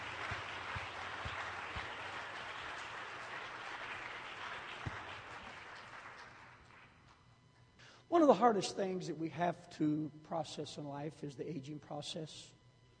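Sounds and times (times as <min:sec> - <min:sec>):
audience clapping: 0:00.0 - 0:07.2
speech: 0:08.2 - 0:12.6.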